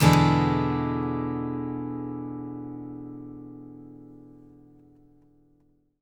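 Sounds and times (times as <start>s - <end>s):
acoustic guitar seventh chord: 0.0s - 4.7s.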